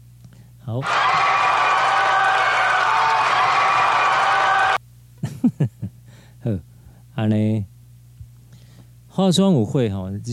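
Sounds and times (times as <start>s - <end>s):
speech: 0.7s - 1.2s, 6.4s - 7.7s, 9.2s - 10.3s
audience applause: 0.8s - 4.8s
crowd cheering: 0.8s - 4.8s.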